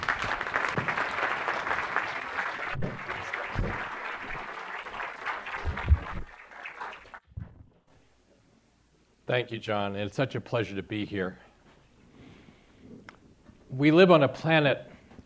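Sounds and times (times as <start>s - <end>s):
audience clapping to welcome a speaker at a Science Sundays talk: 0.0s - 7.2s
speech: 9.3s - 11.4s, 13.8s - 15.2s.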